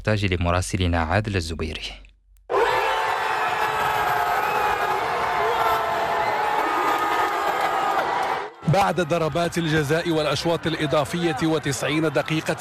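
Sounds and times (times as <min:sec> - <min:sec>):
speech: 0:00.0 - 0:02.0, 0:08.8 - 0:12.5
football fans cheering and celebrating: 0:02.5 - 0:12.5.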